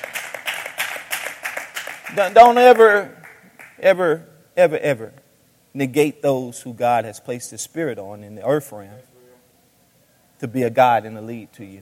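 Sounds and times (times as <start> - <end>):
crowd clapping hands: 0.0 - 3.8
speech: 2.1 - 3.2, 3.8 - 5.2, 5.8 - 9.1, 10.4 - 11.8.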